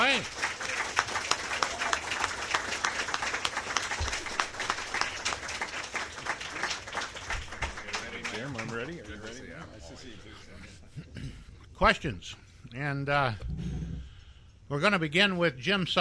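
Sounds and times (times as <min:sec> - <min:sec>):
audience applause: 0:00.0 - 0:09.4
speech: 0:11.8 - 0:13.6, 0:14.7 - 0:15.9.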